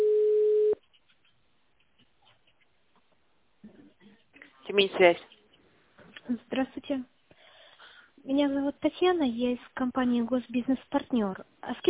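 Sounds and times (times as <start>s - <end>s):
telephone ringback tone while a call is put through to an operator: 0.0s - 0.8s
speech: 4.7s - 5.4s, 6.3s - 7.2s, 8.2s - 11.8s.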